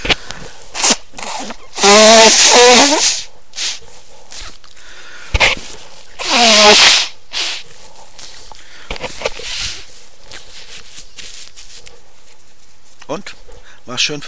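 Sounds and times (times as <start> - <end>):
nose blowing: 0.0 - 3.8, 5.3 - 11.4
speech: 2.3 - 3.2, 14.0 - 14.2
faint rustling and handling: 3.3 - 6.2, 7.5 - 14.2.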